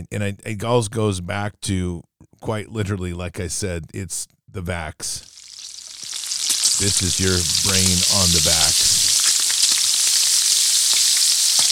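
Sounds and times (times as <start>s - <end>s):
speech: 0.0s - 5.4s, 6.8s - 9.0s
bacon from a home-butchered pig sizzling in a pan: 5.2s - 11.7s.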